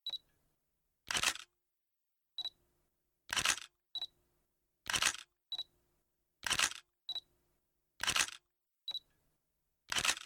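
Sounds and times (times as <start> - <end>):
camera electronic beeps: 0.0 - 0.2, 3.3 - 4.2, 4.9 - 5.7, 6.4 - 7.3, 8.0 - 9.1
camera shutter snap: 1.1 - 1.5, 3.3 - 3.7, 4.9 - 5.3, 6.4 - 6.9, 8.0 - 8.4, 9.9 - 10.2.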